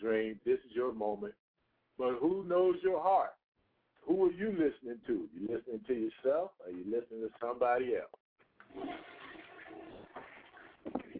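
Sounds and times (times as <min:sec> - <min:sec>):
speech: 0:00.0 - 0:01.4, 0:02.0 - 0:03.4, 0:04.0 - 0:09.1
toilet flushing: 0:08.6 - 0:11.1.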